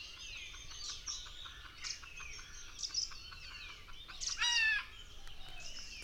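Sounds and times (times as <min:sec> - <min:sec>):
red junglefowl: 0:00.5 - 0:04.9.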